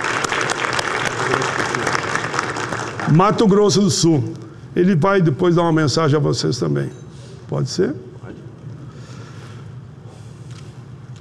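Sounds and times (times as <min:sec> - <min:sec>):
audience applauding: 0:00.0 - 0:03.6
speech: 0:03.1 - 0:08.1.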